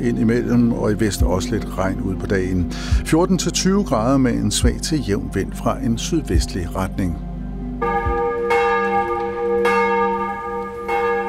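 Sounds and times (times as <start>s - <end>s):
speech: 0.0s - 7.3s
church bells ringing for morning service at Vor Frue Kirke in København: 7.8s - 11.2s.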